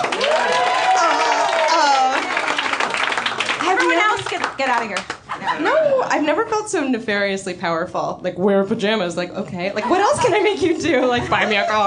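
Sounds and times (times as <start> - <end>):
people whooping and cheering: 0.0 - 3.9, 5.4 - 6.2
audience applause: 0.0 - 5.3
speech: 4.3 - 11.8.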